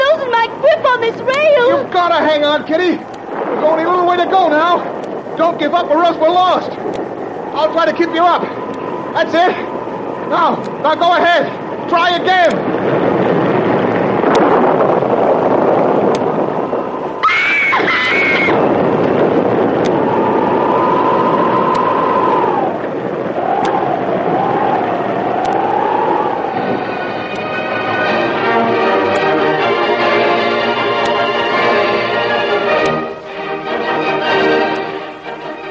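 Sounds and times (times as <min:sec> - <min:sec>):
storm waves crashing over a ship's deck: 0:00.0 - 0:30.7
gusting wind: 0:00.0 - 0:35.7
speech: 0:01.1 - 0:07.0, 0:07.6 - 0:13.0
high whistling howls: 0:20.0 - 0:28.2
droning horn-like tone: 0:26.4 - 0:35.7.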